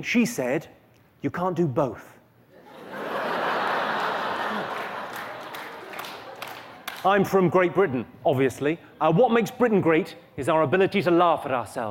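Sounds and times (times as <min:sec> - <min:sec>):
speech: 0:00.0 - 0:02.2, 0:07.0 - 0:11.8
audience laughter: 0:02.6 - 0:06.9
audience applause: 0:03.3 - 0:07.0.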